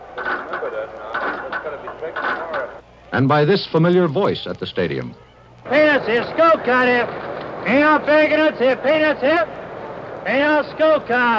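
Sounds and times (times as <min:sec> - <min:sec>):
stadium turnstiles clicking and clattering: 0:00.0 - 0:02.8
steady murmur of crowd noise: 0:00.0 - 0:03.2, 0:05.1 - 0:11.3
speech: 0:00.2 - 0:09.6, 0:10.2 - 0:11.3.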